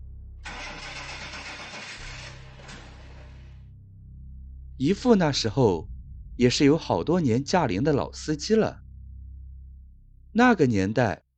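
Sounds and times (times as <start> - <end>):
low constant hum: 0.0 - 11.2
car engine cranking but failing to start: 0.4 - 3.6
speech: 4.8 - 8.8, 10.3 - 11.2.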